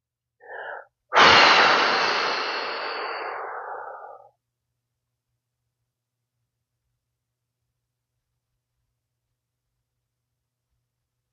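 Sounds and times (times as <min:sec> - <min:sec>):
breaths of a 4-7-8 breathing exercise: 0:00.4 - 0:04.4.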